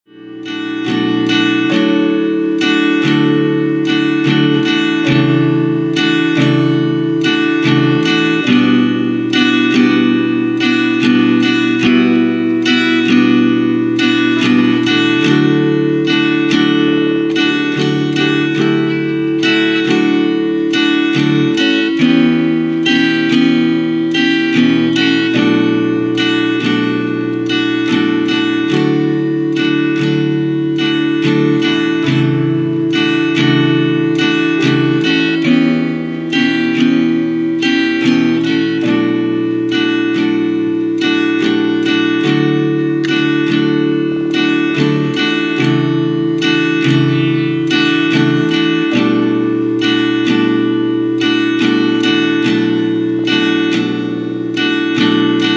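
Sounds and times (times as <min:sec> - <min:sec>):
tremolo playing: 0:00.0 - 0:55.5.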